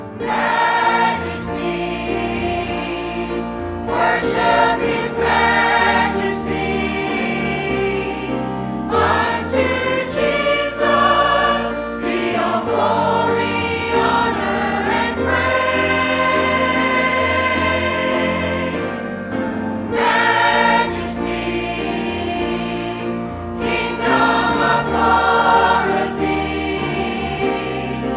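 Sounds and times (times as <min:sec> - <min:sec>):
choir singing: 0:00.1 - 0:28.1.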